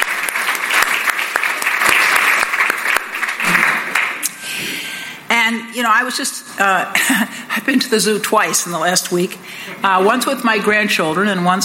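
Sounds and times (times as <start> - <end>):
crowd applause: 0.0 - 4.3
speech: 5.5 - 11.6.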